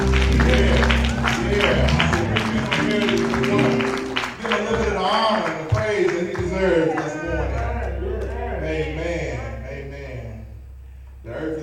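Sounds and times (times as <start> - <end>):
instruments playing: 0.0 - 5.3, 7.2 - 11.6
audience clapping in praise: 0.0 - 8.5
low hum of voices: 0.0 - 11.6.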